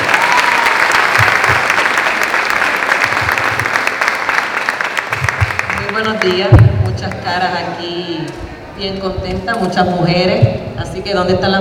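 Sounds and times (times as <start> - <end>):
audience applause: 0.0 - 6.4
speech: 6.2 - 11.6.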